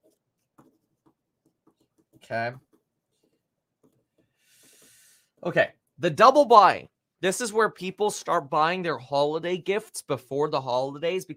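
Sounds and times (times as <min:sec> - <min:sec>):
pen scratching as something is written down: 0:00.0 - 0:04.8
speech: 0:02.3 - 0:02.7, 0:05.4 - 0:11.3.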